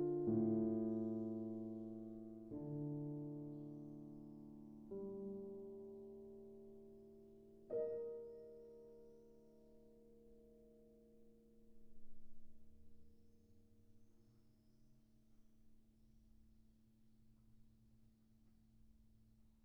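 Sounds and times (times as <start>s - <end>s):
slow piano piece for beginners: 0.0s - 14.0s.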